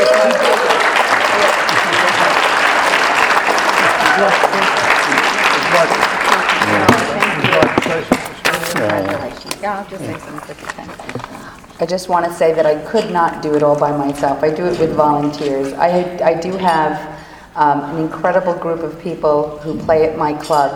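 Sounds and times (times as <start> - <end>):
audience applause: 0.0 - 9.3
speech: 9.6 - 20.7.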